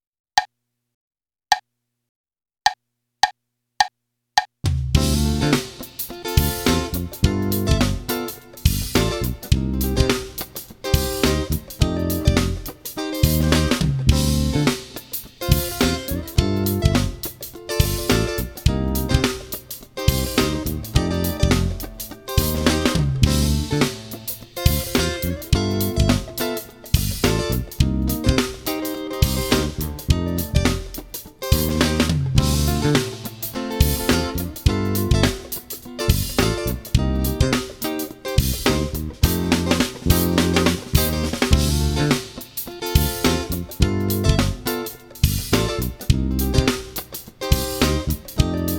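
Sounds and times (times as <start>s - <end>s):
funk groove: 4.7s - 48.7s.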